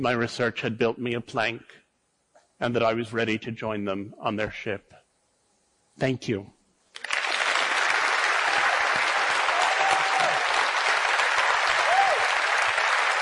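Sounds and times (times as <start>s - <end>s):
speech: 0.0s - 1.8s, 2.6s - 5.0s, 6.0s - 6.6s
audience applause after a talk: 7.0s - 13.1s.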